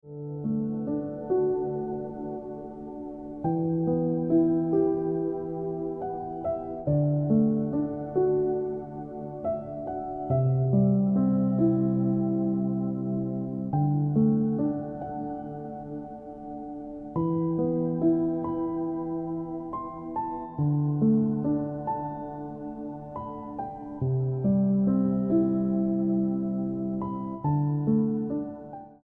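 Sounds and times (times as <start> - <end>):
piano music: 0.0 - 29.0.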